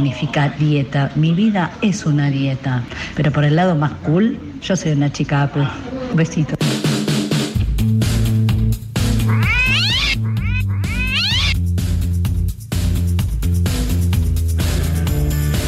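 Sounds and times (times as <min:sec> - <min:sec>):
speech: 0:00.0 - 0:06.7
loud steady music: 0:06.7 - 0:15.6
female cat meowing inside a studio: 0:09.2 - 0:11.6.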